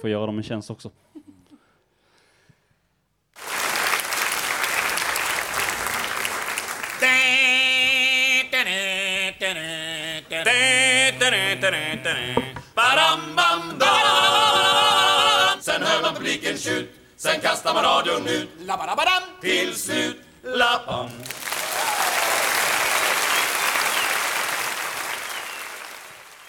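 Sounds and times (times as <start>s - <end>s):
speech: 0.0s - 1.1s, 16.5s - 21.4s
applause-like noise: 3.4s - 7.9s, 21.1s - 26.4s
classic song played in music break: 7.0s - 21.3s.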